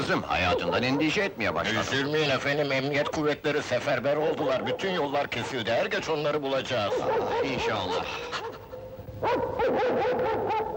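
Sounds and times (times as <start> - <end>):
speech: 0.1 - 8.4, 9.2 - 10.7
tracking dog barking and yelping: 0.4 - 1.3, 6.8 - 10.7.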